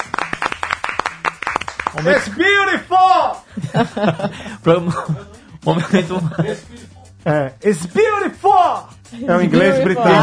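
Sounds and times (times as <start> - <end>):
hand clapping: 0.0 - 2.4
speech: 2.0 - 10.2
laughter: 3.5 - 6.9.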